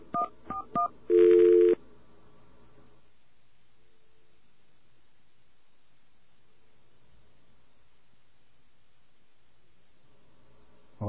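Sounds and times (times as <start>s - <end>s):
telephone number being dialed, touch tones: 0.1s - 1.8s.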